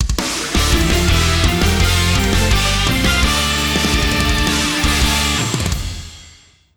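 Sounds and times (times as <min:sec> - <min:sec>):
battle jingle: 0:00.6 - 0:06.5.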